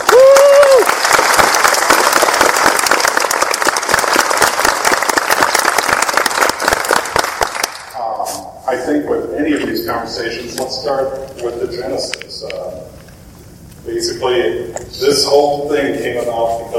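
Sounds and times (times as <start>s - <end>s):
audience applause welcoming guests in Kansas City: 0.0s - 7.9s
speech: 9.4s - 13.0s, 13.8s - 16.7s.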